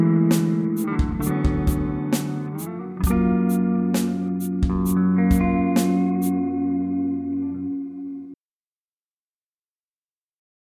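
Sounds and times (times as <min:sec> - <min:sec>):
ambient guitar through Mooer GE 150 Powerbell: 0:00.0 - 0:08.4.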